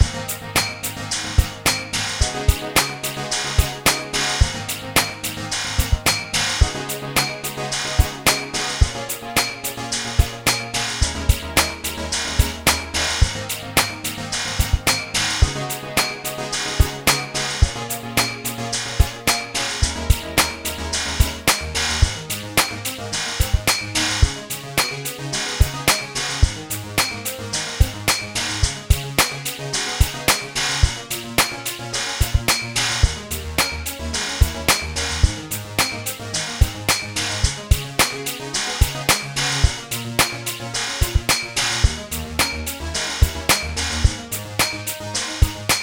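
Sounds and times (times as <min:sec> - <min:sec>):
funny music: 0:00.0 - 0:45.8.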